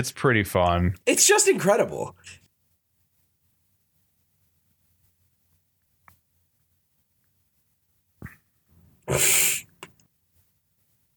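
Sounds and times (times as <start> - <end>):
speech: 0.0 - 2.4, 9.1 - 9.4
person coughing: 9.1 - 9.7.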